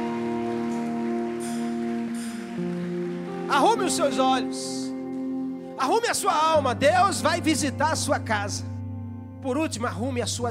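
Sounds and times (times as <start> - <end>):
audience applauding: 0.0 - 5.1
sustained keyboard chords: 0.0 - 10.5
speech: 3.5 - 4.8, 5.8 - 8.7, 9.4 - 10.5.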